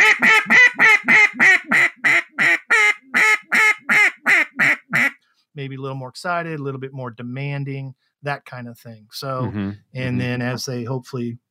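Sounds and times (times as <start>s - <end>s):
duck call blown as comeback call: 0.0s - 5.2s
speech: 5.6s - 11.4s.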